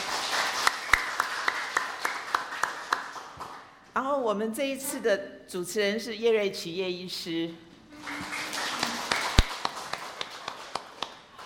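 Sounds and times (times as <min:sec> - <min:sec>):
audience applause: 0:00.0 - 0:03.4, 0:07.9 - 0:11.4
speech: 0:04.1 - 0:08.3.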